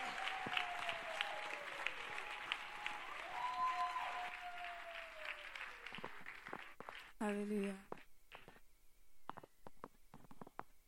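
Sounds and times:
audience clapping: 0.0s - 8.5s
speech: 7.2s - 7.9s.

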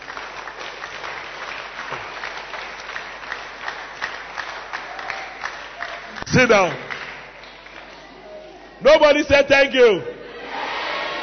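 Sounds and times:
audience clapping: 0.0s - 8.2s
speech: 6.3s - 6.9s, 8.8s - 10.2s.

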